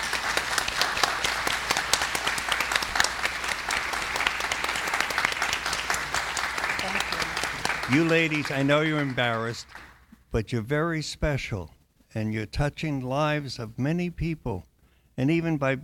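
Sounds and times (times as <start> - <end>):
crowd applause: 0.0 - 10.1
speech: 7.9 - 15.8.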